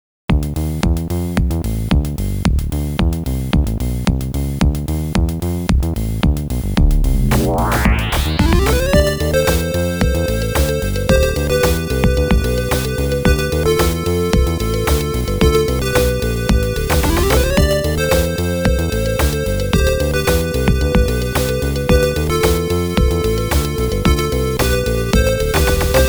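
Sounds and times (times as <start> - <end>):
FM synthesizer instrumental: 0.4 - 26.0.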